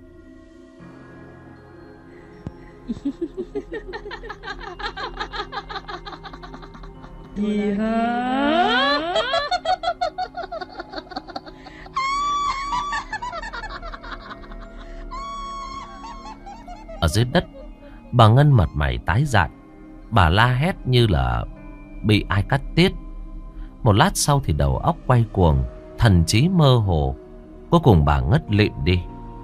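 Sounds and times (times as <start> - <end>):
woman laughing maniacally over a river: 2.8 - 18.1
speech: 2.9 - 5.8, 7.4 - 8.8, 17.1 - 17.5, 18.1 - 23.0, 23.8 - 29.1.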